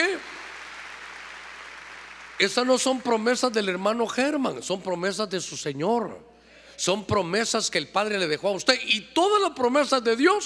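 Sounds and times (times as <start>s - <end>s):
audience clapping loudly: 0.0s - 2.8s
speech: 2.4s - 10.4s.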